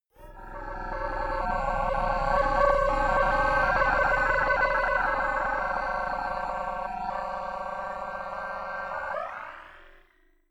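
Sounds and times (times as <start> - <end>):
long whoosh drone swell: 0.2 - 9.5.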